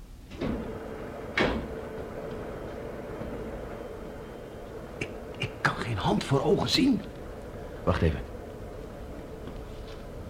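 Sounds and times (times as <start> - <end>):
steady low mechanical hum: 0.0 - 10.2
laboratory door scraping and rattling as it is opened: 0.3 - 3.6
speech: 6.1 - 7.2, 7.9 - 8.3.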